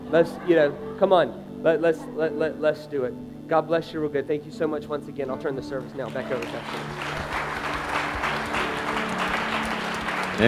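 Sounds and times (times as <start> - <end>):
speech: 0.1 - 7.5
audience applause: 6.0 - 10.4.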